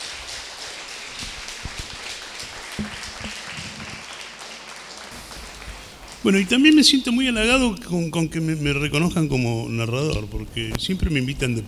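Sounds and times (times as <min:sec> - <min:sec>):
audience applause: 0:00.0 - 0:07.6
speech: 0:06.2 - 0:11.6.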